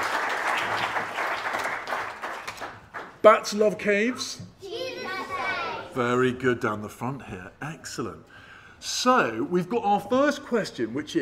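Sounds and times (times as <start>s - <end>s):
audience applause: 0.0s - 3.2s
speech: 3.2s - 4.4s, 6.0s - 11.2s.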